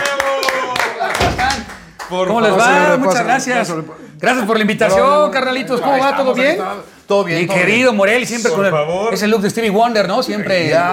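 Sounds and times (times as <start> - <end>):
crowd voices cheering: 0.0 - 1.7
scattered applause: 0.0 - 2.8
speech: 2.1 - 10.9.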